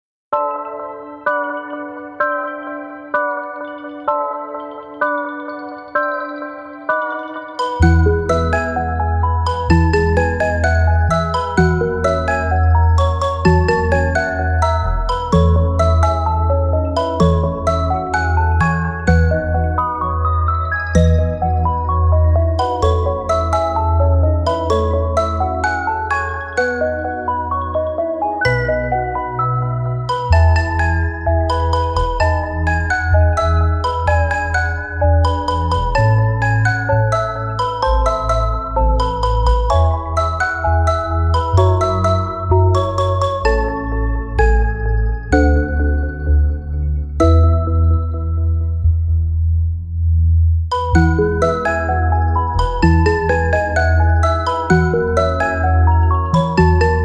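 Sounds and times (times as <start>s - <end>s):
instrumental music: 0.4s - 57.0s.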